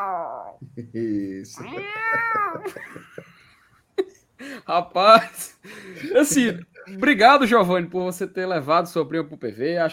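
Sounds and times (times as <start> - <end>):
cat meowing: 0.0 - 0.6, 1.6 - 2.8
speech: 0.6 - 3.6, 4.7 - 9.9.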